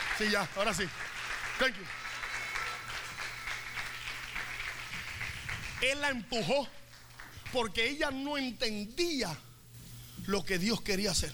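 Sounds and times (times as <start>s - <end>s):
audience applause: 0.0s - 6.2s
speech: 0.2s - 2.0s, 5.8s - 6.8s, 7.5s - 9.5s, 10.2s - 11.3s.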